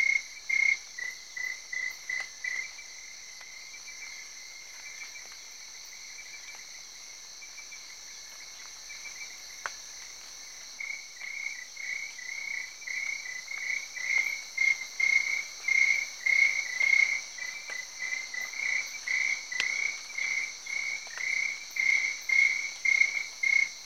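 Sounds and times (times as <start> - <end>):
crickets chirping at night in Africa: 0.0 - 23.8.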